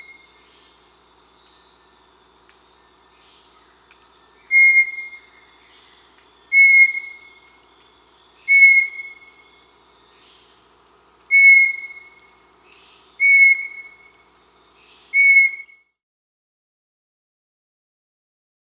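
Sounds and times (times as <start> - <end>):
Bartlett's tinamou whistled song: 0.0 - 0.8, 4.4 - 5.7, 6.5 - 7.6, 8.4 - 9.4, 11.3 - 14.2, 14.8 - 15.9.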